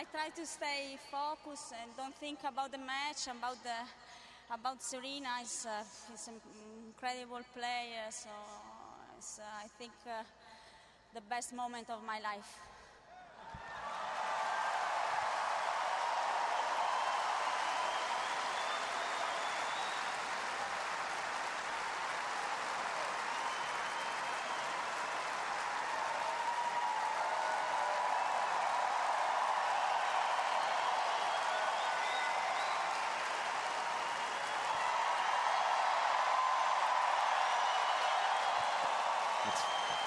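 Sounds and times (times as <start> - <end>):
speech: 0.0 - 12.8
stadium crowd applause: 13.6 - 40.0.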